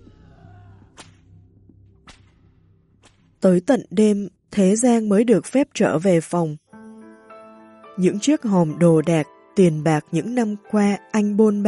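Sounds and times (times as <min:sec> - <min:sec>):
whip swishing through the air: 0:01.0 - 0:01.3, 0:02.0 - 0:02.4
speech: 0:03.4 - 0:06.6, 0:08.0 - 0:11.6.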